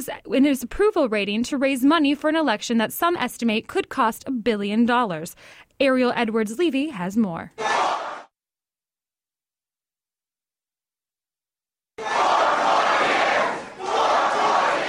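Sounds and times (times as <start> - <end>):
speech: 0.0 - 7.7
crowd cheering at a President Barack Obama speech at Hollywood's House of Blues: 7.6 - 8.3, 12.0 - 14.8.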